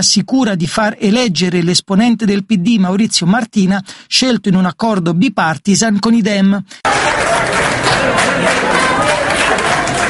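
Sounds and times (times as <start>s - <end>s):
speech: 0.0s - 8.7s
crowd applause welcoming a speaker: 6.8s - 10.0s.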